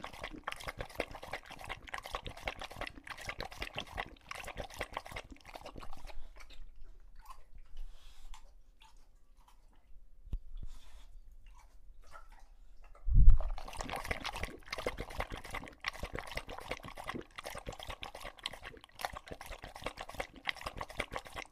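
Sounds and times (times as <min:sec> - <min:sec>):
English Bulldog lapping water: 0:00.0 - 0:09.9, 0:10.6 - 0:21.5.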